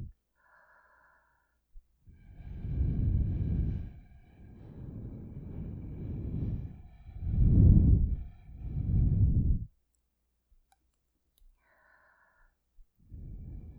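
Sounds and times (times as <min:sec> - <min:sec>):
blowing into ears through a straw: 0:02.5 - 0:09.7.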